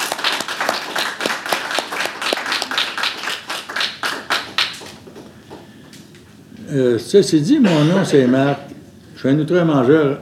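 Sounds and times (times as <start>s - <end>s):
audience applause: 0.0s - 5.0s
speech: 6.7s - 10.1s.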